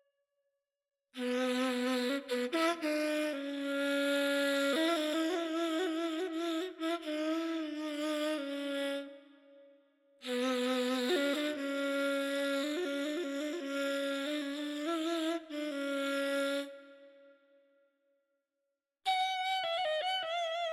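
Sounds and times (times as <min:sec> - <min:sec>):
Azerbaijani ney flute playing in Dastgah Shur: 0:01.2 - 0:09.4, 0:10.2 - 0:17.3, 0:19.1 - 0:20.7.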